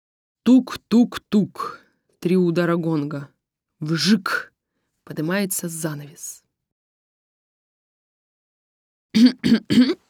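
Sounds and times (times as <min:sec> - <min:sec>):
speech: 0:00.5 - 0:04.5, 0:05.1 - 0:06.4, 0:09.2 - 0:10.0
voice imitating an old man in a theatre audience coughing and clearing throat: 0:09.2 - 0:10.0.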